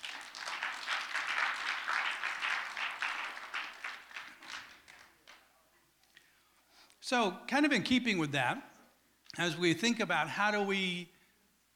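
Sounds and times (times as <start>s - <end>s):
audience clapping: 0.0s - 5.4s
speech: 7.1s - 8.7s, 9.4s - 11.1s.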